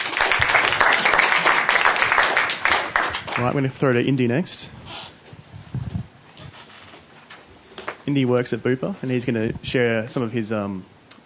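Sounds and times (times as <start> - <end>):
audience applause: 0.0 - 3.6
speech: 3.4 - 4.8, 8.1 - 11.2.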